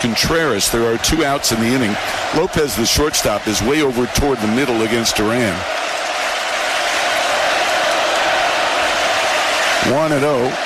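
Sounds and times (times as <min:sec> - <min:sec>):
speech: 0:00.0 - 0:06.0, 0:09.8 - 0:10.6
loud large ballpark crowd cheering: 0:00.0 - 0:10.6.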